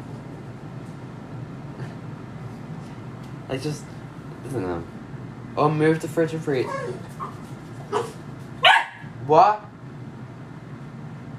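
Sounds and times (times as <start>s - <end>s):
speech: 3.5s - 5.0s, 5.6s - 7.4s, 9.3s - 9.7s
dog barking: 7.9s - 9.1s.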